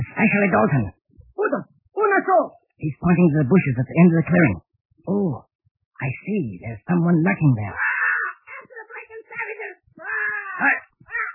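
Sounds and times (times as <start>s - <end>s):
speech: 0.2s - 7.8s, 10.6s - 10.8s
parrot squawking: 7.8s - 8.5s.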